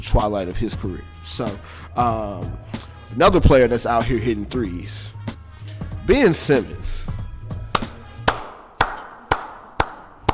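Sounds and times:
speech: 0.0 - 5.2, 6.1 - 7.2
hand clapping: 7.7 - 10.3.

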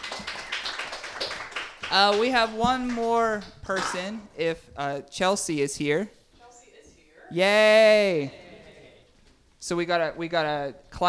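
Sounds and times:
audience applause: 0.0 - 3.1
speech: 1.9 - 6.2, 7.3 - 8.4, 9.6 - 11.0.

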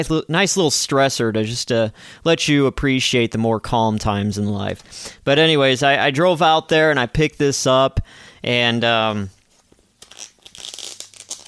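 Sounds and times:
speech: 0.0 - 9.4
plastic takeout case and foil wrapper crinkling and tearing: 9.4 - 11.4.

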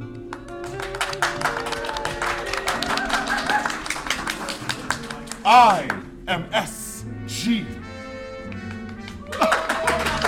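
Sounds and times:
audience applause: 0.0 - 6.0, 9.0 - 10.2
laughter: 0.7 - 5.9, 9.2 - 10.2
speech: 5.5 - 6.8.

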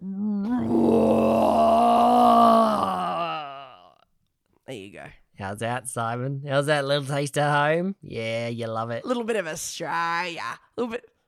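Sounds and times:
loud belch into the microphone: 0.6 - 3.4
speech: 4.8 - 11.1.

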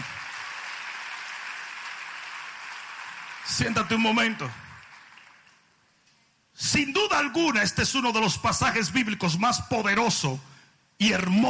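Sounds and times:
audience applauding: 0.0 - 5.7
speech: 3.5 - 4.6, 6.7 - 11.4.

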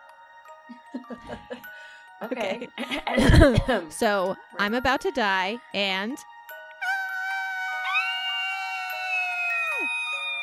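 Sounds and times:
laughter: 0.7 - 1.7, 2.3 - 3.9
speech: 0.7 - 6.3
quiet imitated banshee scream: 6.8 - 10.4.

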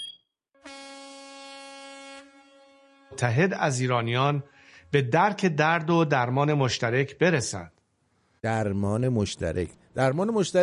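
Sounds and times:
vehicle horn honking: 0.6 - 4.8
speech: 3.1 - 7.8, 8.4 - 10.6.

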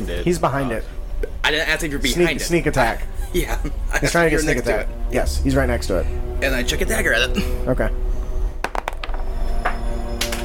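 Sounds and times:
speech: 0.0 - 8.0
dice clattering and tumbling: 8.6 - 9.3, 10.2 - 10.4.

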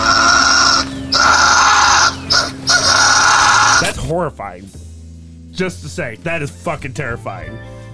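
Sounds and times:
fisher cat call: 0.0 - 4.0
speech: 4.2 - 4.8, 5.6 - 7.8.

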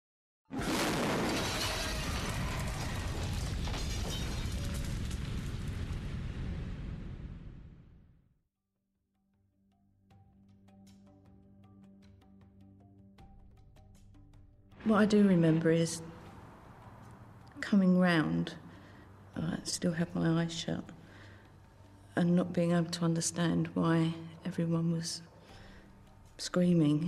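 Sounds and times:
bomb explosion: 0.5 - 8.2
crackling rumble of shattering debris: 0.6 - 7.8
speech: 14.8 - 16.1, 17.7 - 18.6, 19.4 - 21.0, 22.2 - 25.3, 26.4 - 27.0.

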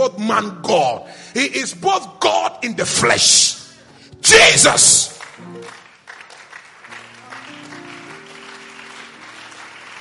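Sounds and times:
speech: 0.0 - 3.6, 4.2 - 5.8
audience clapping: 4.7 - 10.0.

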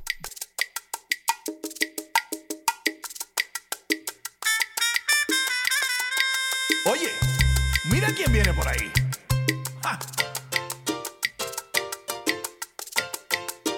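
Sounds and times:
cowbell beat: 0.0 - 13.7
salsa song: 3.4 - 13.7
speech: 6.8 - 9.0.

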